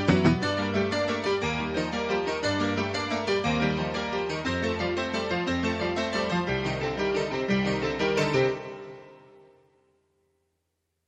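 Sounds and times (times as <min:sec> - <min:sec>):
excited piano playing: 0:00.0 - 0:08.7.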